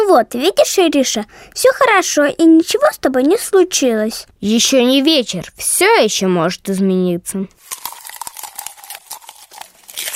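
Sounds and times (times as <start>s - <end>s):
speech: 0.2s - 7.8s
bookworm munching crunchy paper: 7.6s - 10.1s.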